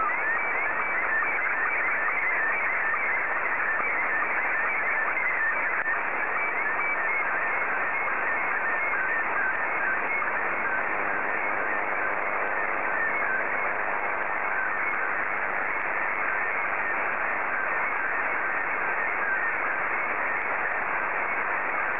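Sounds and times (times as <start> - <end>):
SSTV signal: 0.0 - 21.9.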